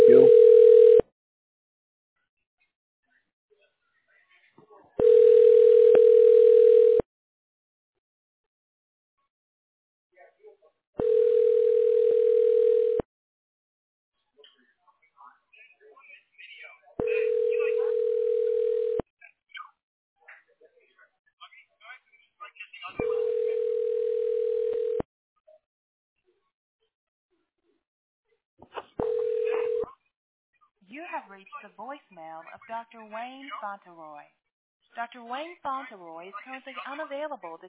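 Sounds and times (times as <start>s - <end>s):
telephone ringing while a call is transferred: 0.0s - 1.0s, 5.0s - 7.0s, 11.0s - 13.0s, 17.0s - 19.0s, 23.0s - 25.0s, 29.0s - 29.9s
speech: 31.4s - 37.6s.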